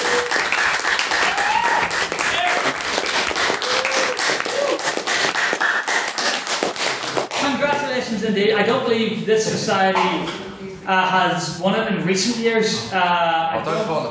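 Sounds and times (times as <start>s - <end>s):
whoops and cheers: 0.0s - 0.5s, 1.1s - 2.7s, 3.5s - 5.1s
audience applauding: 0.0s - 7.5s
speech: 8.3s - 14.0s.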